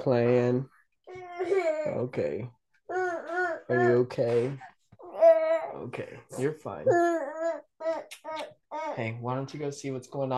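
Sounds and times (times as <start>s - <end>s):
speech: 0.0s - 0.8s, 1.4s - 2.6s, 3.7s - 4.7s, 5.8s - 7.3s, 9.0s - 10.3s
baby crying and babbling: 1.1s - 2.1s, 2.9s - 5.8s, 6.4s - 9.0s.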